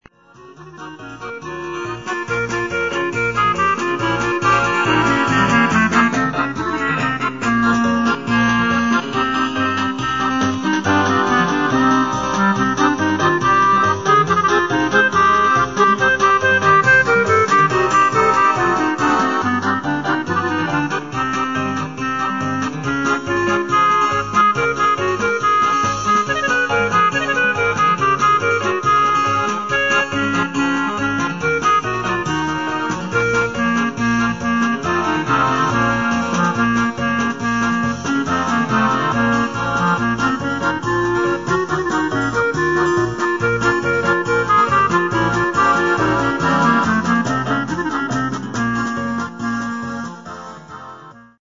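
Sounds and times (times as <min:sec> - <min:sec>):
klezmer music: 0:00.0 - 0:51.3.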